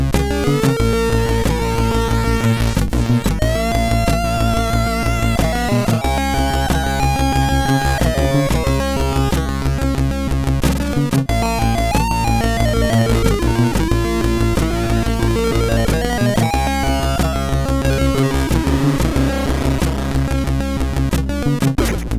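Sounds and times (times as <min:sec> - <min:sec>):
remix on MOS6581R4: 0:00.1 - 0:10.3, 0:10.9 - 0:22.1.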